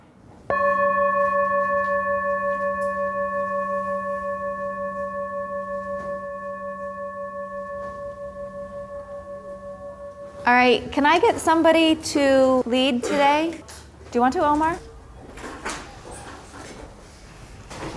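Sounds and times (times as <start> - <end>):
mindfulness bell ringing: 0.5 - 11.2
speech: 10.5 - 14.9.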